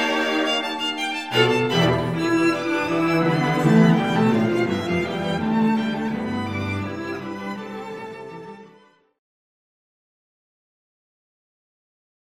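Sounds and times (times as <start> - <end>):
quartet playing: 0.0 - 7.3.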